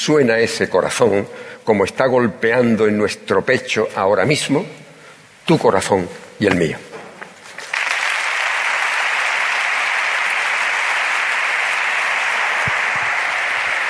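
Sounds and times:
speech: 0.0 - 4.8, 5.5 - 6.9
crowd applauding: 7.5 - 13.8.

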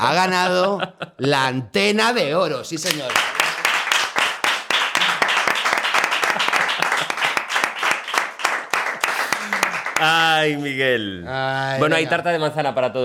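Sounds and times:
speech: 0.0 - 3.4, 10.4 - 13.0
audience applause: 2.9 - 10.4.

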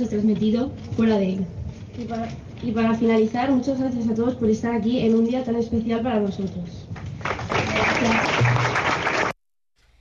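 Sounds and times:
speech: 0.0 - 6.8, 8.0 - 8.5
audience applause: 7.2 - 9.4.

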